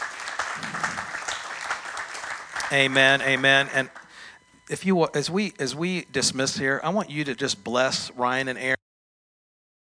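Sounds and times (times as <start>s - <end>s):
church congregation clapping hands in a morning service: 0.0s - 4.3s
speech: 2.7s - 4.0s, 4.7s - 8.8s.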